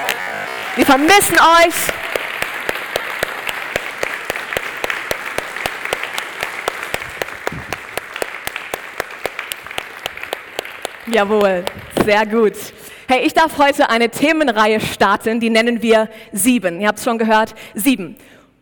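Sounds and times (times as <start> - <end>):
audience applauding: 0.0 - 12.0
speech: 0.8 - 2.0, 11.1 - 18.3.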